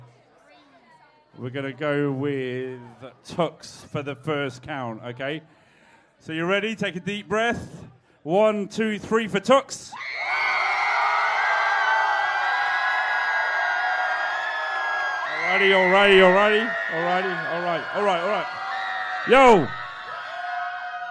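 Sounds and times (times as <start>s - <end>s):
speech: 1.4s - 5.6s, 6.2s - 10.1s, 15.5s - 18.6s, 19.2s - 19.8s
whoops and shouted voices: 9.9s - 21.0s
crowd cheering: 10.0s - 21.0s.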